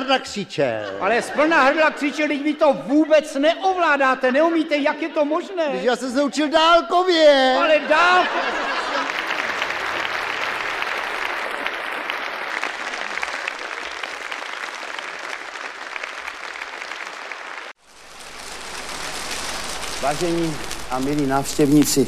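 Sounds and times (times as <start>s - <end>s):
laughter: 0.0s - 3.8s, 4.8s - 6.1s, 7.4s - 14.2s
speech: 0.1s - 8.9s, 20.1s - 22.0s
audience applause: 8.1s - 22.0s.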